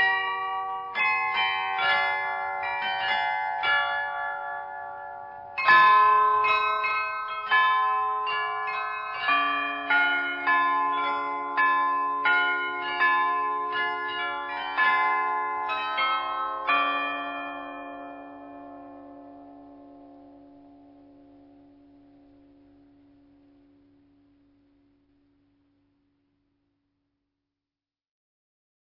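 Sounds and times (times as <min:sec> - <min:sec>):
clock: 0:00.0 - 0:19.0.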